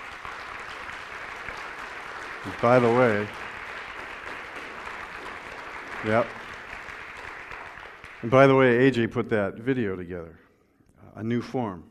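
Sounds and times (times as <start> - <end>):
audience hand clapping: 0.0 - 8.9
speech: 2.4 - 3.4, 6.0 - 6.4, 8.2 - 10.4, 11.2 - 11.8.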